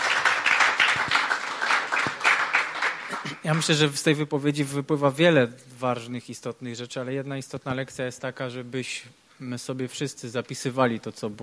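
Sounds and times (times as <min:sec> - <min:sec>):
audience applause: 0:00.0 - 0:03.6
speech: 0:03.4 - 0:11.4.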